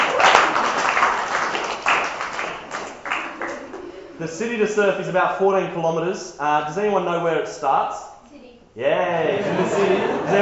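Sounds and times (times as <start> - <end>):
round of applause: 0.0 - 3.8
laughter: 2.7 - 5.2, 8.8 - 10.4
speech: 4.2 - 8.1, 8.8 - 10.4.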